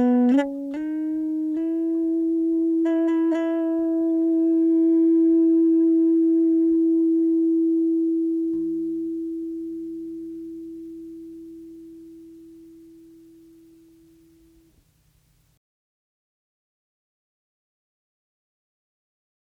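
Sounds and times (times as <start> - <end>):
bass guitar played with E-bow: 0.0 - 14.6.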